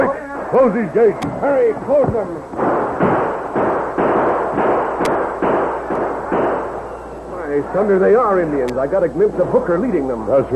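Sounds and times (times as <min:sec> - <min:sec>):
speech: 0:00.5 - 0:02.7, 0:07.6 - 0:10.5
gunfire: 0:01.9 - 0:07.2.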